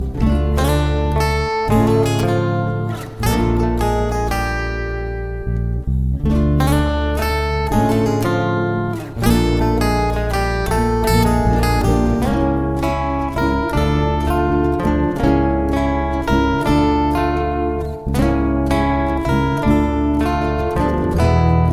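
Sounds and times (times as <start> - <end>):
guitar: 0.0 - 21.7.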